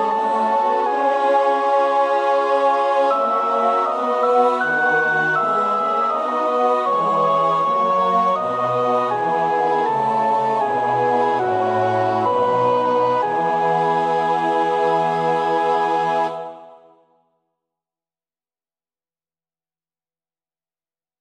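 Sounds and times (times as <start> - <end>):
choir sopranos singing a chorale part: 0.0 - 17.0.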